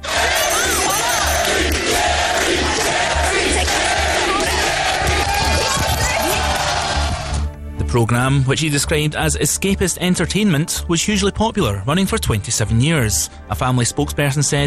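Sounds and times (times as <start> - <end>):
talk show audience chanting the host's name: 0.0 - 7.4
speech: 7.9 - 14.6.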